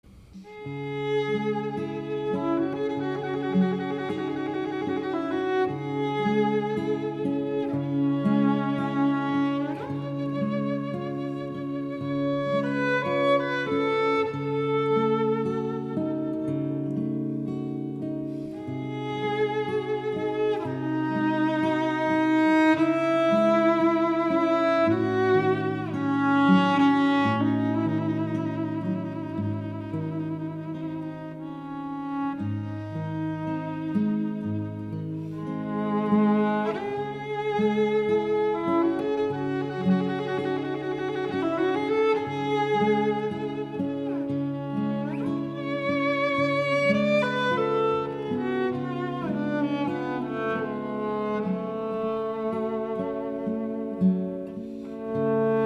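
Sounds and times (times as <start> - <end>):
nocturne in C sharp minor: 0.0 - 55.6.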